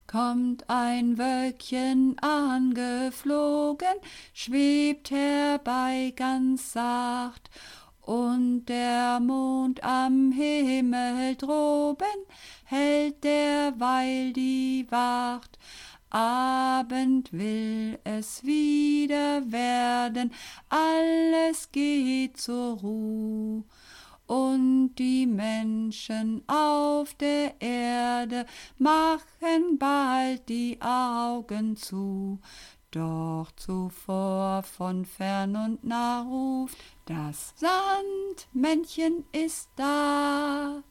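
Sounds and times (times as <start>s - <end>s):
soprano voice: 0.0s - 40.8s.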